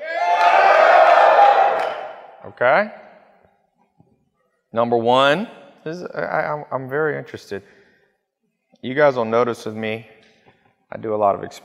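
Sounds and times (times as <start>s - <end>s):
crowd yelling and cheering: 0.0s - 2.4s
speech: 2.6s - 3.0s, 4.7s - 7.8s, 8.8s - 10.1s, 10.9s - 11.6s.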